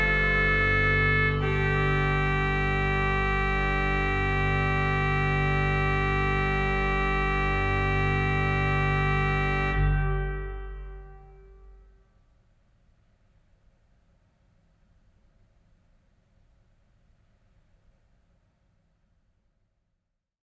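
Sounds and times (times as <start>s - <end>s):
Scottish bagpipes: 0.0s - 11.6s
organ playing: 0.0s - 11.8s.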